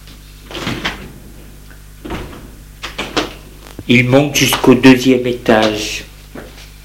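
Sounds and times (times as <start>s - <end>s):
door opening: 0.5s - 5.0s
speech: 3.9s - 6.1s.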